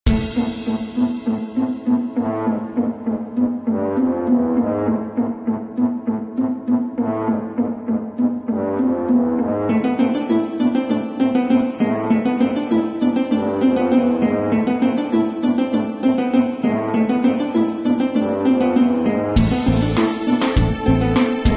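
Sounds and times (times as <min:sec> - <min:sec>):
dark cave music: 0:00.1 - 0:21.5.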